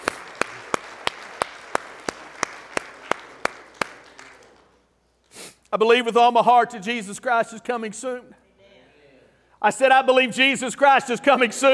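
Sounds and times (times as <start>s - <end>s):
audience applauding: 0.0s - 4.8s
speech: 5.7s - 8.4s, 9.6s - 11.7s.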